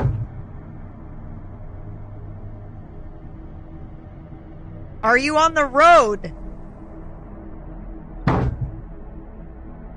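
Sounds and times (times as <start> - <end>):
speech: 5.0 - 6.4
someone repeatedly hitting an old car: 8.3 - 8.8.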